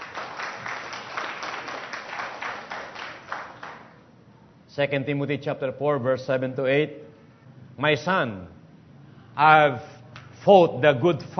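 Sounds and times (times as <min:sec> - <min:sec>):
church congregation applause: 0:00.0 - 0:04.1
speech: 0:04.8 - 0:07.1, 0:07.8 - 0:08.6, 0:09.4 - 0:11.3.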